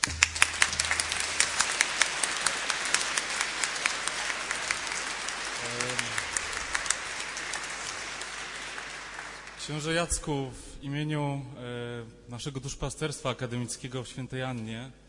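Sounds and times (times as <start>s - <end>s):
audience clapping: 0.0s - 10.3s
murmur of voices: 2.7s - 7.5s
speech: 9.7s - 15.0s.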